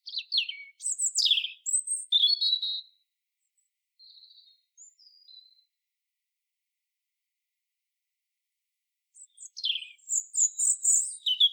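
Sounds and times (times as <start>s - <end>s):
European robin Erithacus rubecula singing: 0.0s - 3.0s, 4.0s - 5.8s, 9.2s - 11.5s.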